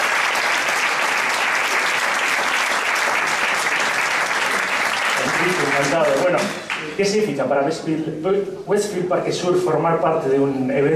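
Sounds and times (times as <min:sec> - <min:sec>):
audience applause at a community event in Leganés: 0:00.0 - 0:07.0
speech: 0:05.8 - 0:10.9.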